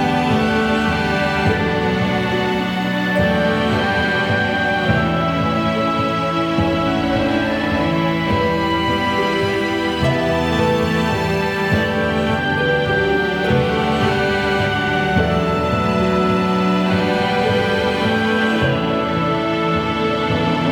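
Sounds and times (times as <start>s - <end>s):
emotional uplifting music: 0.0s - 20.7s.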